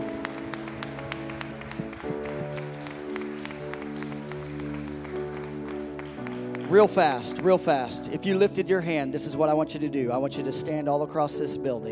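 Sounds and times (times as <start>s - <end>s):
audience clapping hands: 0.0s - 8.0s
organ or keyboard chords: 0.0s - 11.9s
speech: 6.7s - 11.9s.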